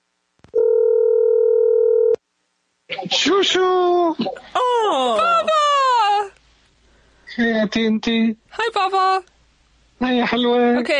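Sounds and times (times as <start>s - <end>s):
phone call ringing tone: 0.6s - 2.2s
speech: 3.3s - 5.5s, 7.4s - 9.3s, 10.0s - 10.9s.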